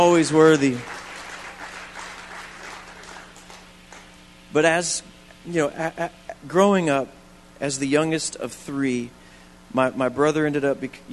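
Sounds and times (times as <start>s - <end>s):
speech: 0.0s - 1.0s, 4.5s - 11.1s
audience clapping: 0.0s - 4.2s.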